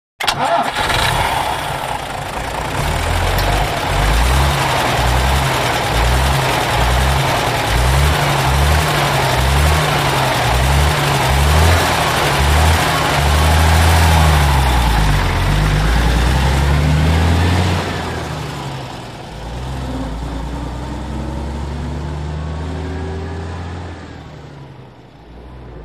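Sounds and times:
coach bus starting and pulling away: 0:00.2 - 0:25.8.

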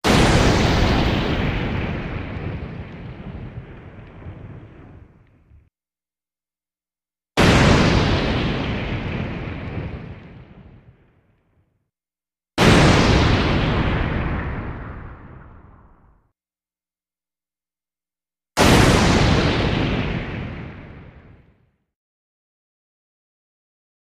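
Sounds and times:
explosions processed through vocoder for underwater effect: 0:00.0 - 0:05.7, 0:07.4 - 0:11.6, 0:12.6 - 0:16.3, 0:18.6 - 0:21.7.

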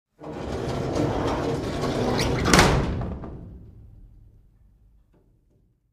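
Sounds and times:
antique industrial dryer drawer opening: 0:00.2 - 0:03.0.

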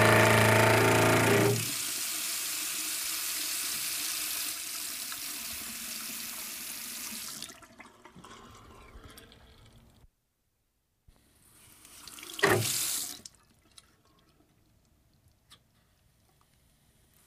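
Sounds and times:
water running from a pipe faucet: 0:00.0 - 0:07.8, 0:11.8 - 0:13.3.

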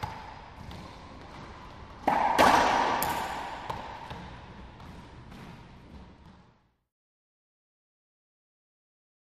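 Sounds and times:
racquetball game ambiance: 0:00.0 - 0:06.9.

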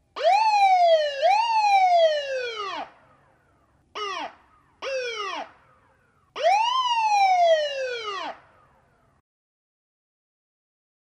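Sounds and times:
ambulance wailer siren: 0:00.2 - 0:03.1, 0:04.0 - 0:09.0.

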